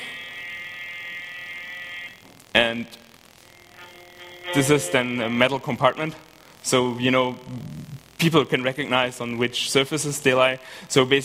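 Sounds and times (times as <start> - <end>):
phone vibrating on a chair: 0.0 - 2.5, 3.4 - 5.4
speech: 2.7 - 3.0, 4.5 - 11.2.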